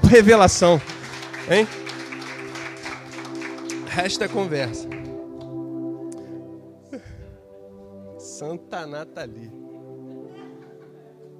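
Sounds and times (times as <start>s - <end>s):
audience applause: 0.0s - 5.6s
speech: 0.1s - 0.9s, 1.5s - 1.8s, 4.0s - 5.0s, 8.5s - 9.6s
laughter: 9.6s - 11.3s.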